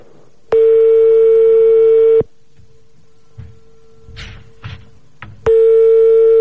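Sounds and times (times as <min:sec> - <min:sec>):
landline telephone ringing tone: 0:00.5 - 0:02.2, 0:05.5 - 0:06.4.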